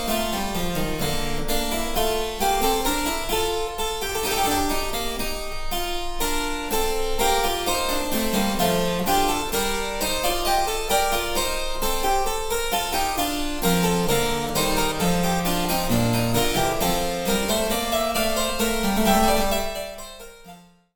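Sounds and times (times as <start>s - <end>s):
harpsichord playing: 0.0s - 20.9s.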